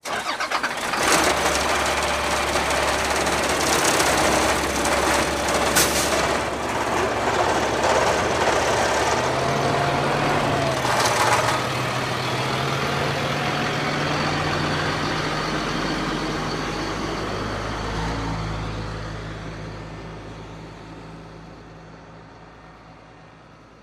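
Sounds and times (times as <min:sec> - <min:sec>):
school bus driving off: 0:00.0 - 0:23.8.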